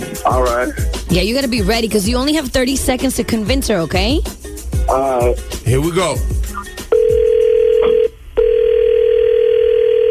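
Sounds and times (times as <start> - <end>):
speech: 0.2 - 6.3
telephone call dialing tone: 6.9 - 10.1.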